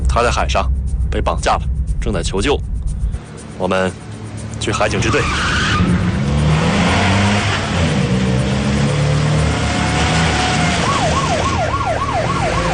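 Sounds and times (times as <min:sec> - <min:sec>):
speech: 0:00.2 - 0:02.7, 0:03.6 - 0:04.0, 0:04.6 - 0:06.0
police car engine revving: 0:00.7 - 0:11.6
police car wailing siren: 0:09.6 - 0:12.7.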